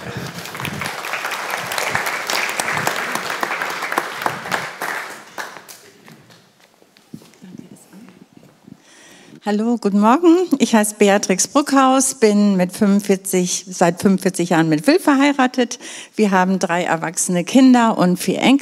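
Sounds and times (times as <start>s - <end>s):
crowd applauding: 0.0s - 6.4s
speech: 9.5s - 18.6s.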